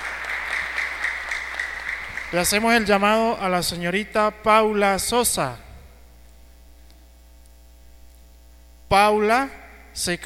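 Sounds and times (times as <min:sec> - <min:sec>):
audience applause: 0:00.0 - 0:02.9
speech: 0:02.3 - 0:05.6, 0:08.9 - 0:10.2.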